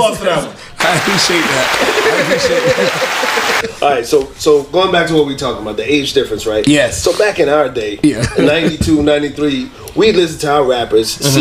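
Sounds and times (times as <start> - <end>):
speech: 0.0 - 11.3
applause: 0.8 - 3.6
laughter: 0.8 - 3.8, 8.0 - 9.1.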